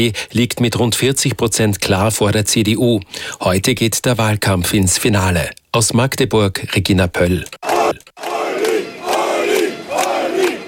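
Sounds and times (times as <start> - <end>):
speech: 0.0 - 8.4
supporters cheering and chanting at an election rally: 7.6 - 10.6.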